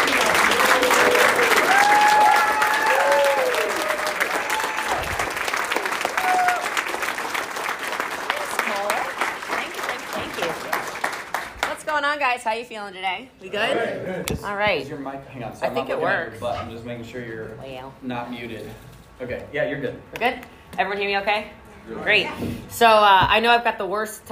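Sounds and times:
audience applauding: 0.0 - 11.9
several whooping voices: 0.5 - 5.4, 6.0 - 6.9
speech: 12.5 - 24.3.

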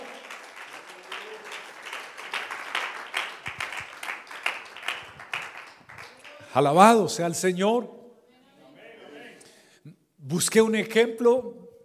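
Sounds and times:
audience applause: 0.0 - 6.6
speech: 6.6 - 8.0, 10.3 - 11.6.

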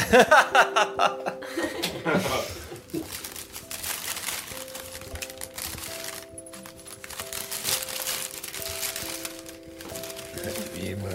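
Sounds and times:
person chuckling: 0.0 - 3.1
gift wrapping paper crinkling and rustling: 2.7 - 11.1.

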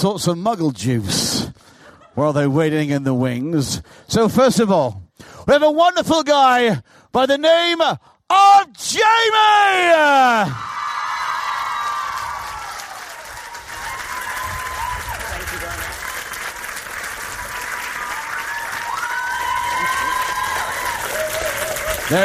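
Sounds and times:
speech: 0.0 - 10.8, 22.1 - 22.2
audience cheering and applauding: 9.6 - 22.2.

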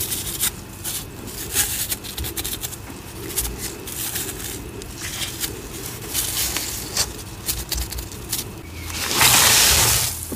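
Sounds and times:
cornstarch and citric acid powder crackling: 0.0 - 10.3
loud hissing pouring sizzle: 8.6 - 10.3.

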